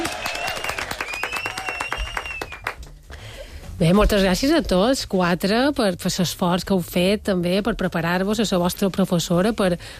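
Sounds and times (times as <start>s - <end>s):
faint whistles and cheers: 0.0s - 2.8s
audience applause: 0.0s - 2.9s
speech: 3.8s - 9.9s.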